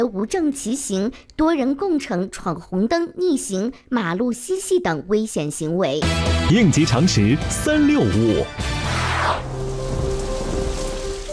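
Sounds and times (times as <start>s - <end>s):
speech: 0.0s - 9.4s
thunderstorm rain: 9.4s - 11.3s.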